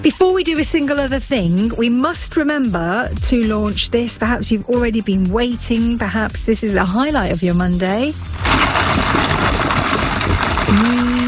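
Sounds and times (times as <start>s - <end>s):
speech: 0.0s - 9.3s
ice cubes rattling in iced coffee: 8.3s - 11.2s.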